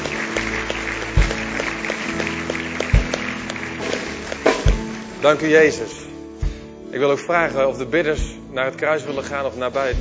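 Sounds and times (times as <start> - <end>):
audience applauding: 0.0 - 5.8
speech: 5.2 - 6.1, 6.9 - 9.9.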